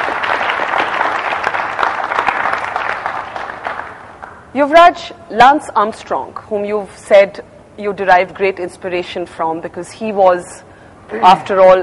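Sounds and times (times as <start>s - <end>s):
audience applause: 0.0s - 4.2s
speech: 4.5s - 11.8s.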